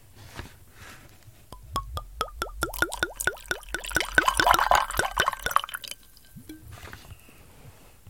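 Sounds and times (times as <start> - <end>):
whisky bottle being poured: 1.6 - 7.0.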